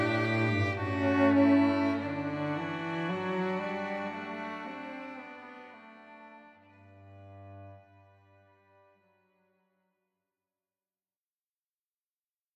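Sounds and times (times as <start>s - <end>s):
classical music piece: 0.0s - 9.0s.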